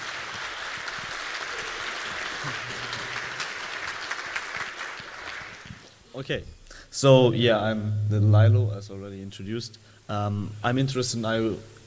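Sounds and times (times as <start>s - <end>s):
audience applause: 0.0s - 5.8s
speech: 2.4s - 2.8s, 6.2s - 11.8s.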